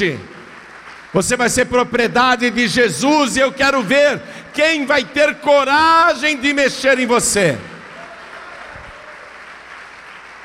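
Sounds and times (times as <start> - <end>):
speech: 0.0 - 0.3, 1.1 - 7.7
audience applauding: 0.0 - 1.9, 7.8 - 10.4.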